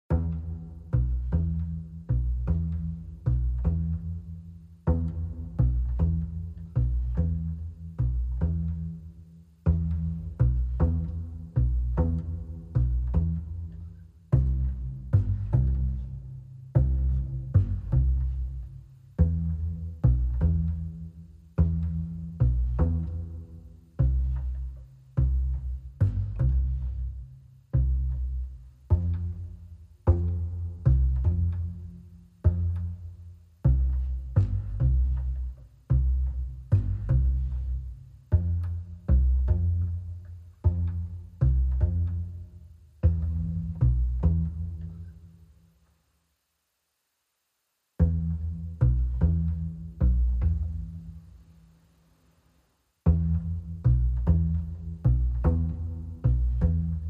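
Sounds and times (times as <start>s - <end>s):
bass: 0.0s - 57.0s.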